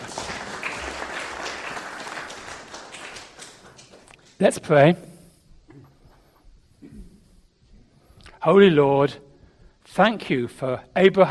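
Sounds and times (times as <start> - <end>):
crowd applauding: 0.0 - 4.4
speech: 4.4 - 5.1, 8.4 - 9.3, 10.0 - 11.2.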